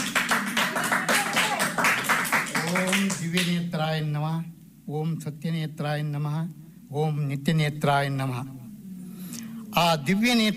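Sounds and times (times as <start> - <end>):
audience clapping for the chief guest at a gathering: 0.0 - 3.6
speech: 3.3 - 8.6, 9.8 - 10.5.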